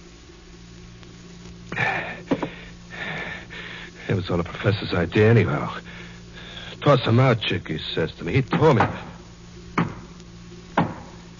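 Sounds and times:
speech: 4.2 - 5.9, 6.8 - 9.1
knocking on a door: 9.8 - 10.1, 10.8 - 11.1.

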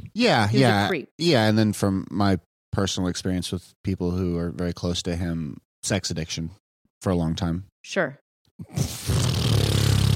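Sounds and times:
speech: 0.2 - 9.5
fart noise: 8.6 - 10.1.

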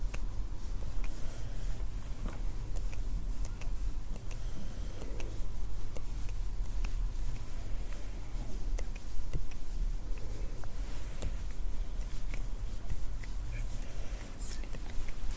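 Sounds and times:
hands moving and rubbing: 0.0 - 15.3.

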